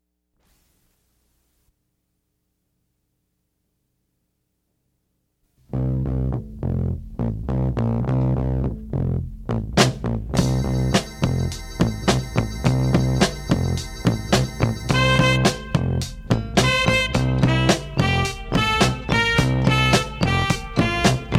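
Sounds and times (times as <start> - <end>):
funky Korean soul music: 5.8 - 21.3.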